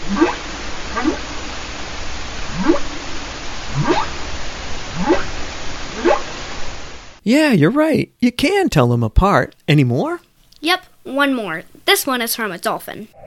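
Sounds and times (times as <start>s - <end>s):
humpback whale song: 0.0s - 1.8s, 2.4s - 6.4s
speech: 7.3s - 13.2s.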